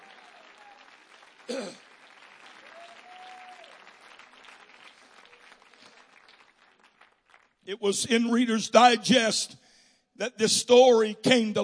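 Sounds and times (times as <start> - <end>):
audience clapping hands: 0.0 - 8.2
speech: 7.7 - 9.6, 10.2 - 11.6.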